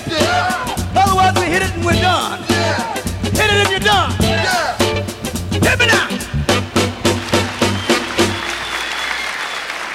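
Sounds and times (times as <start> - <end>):
speech: 0.1 - 0.5, 1.5 - 2.9
punchy musical hits: 0.1 - 8.6
audience applause: 7.0 - 9.9.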